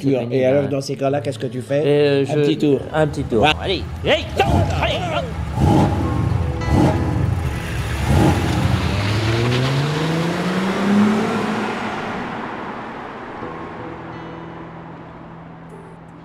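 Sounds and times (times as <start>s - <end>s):
speech: 0.0s - 6.0s
car engine revving and driving off: 2.6s - 13.7s.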